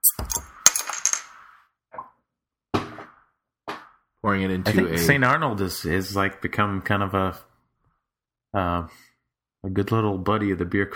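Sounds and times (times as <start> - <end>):
bottle cap clinking: 0.0 - 1.3
speech: 4.2 - 7.5, 8.5 - 10.9.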